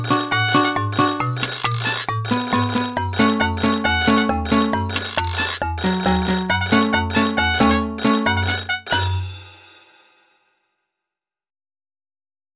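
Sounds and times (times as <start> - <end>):
Nokia oompah ringtone: 0.0 - 9.2.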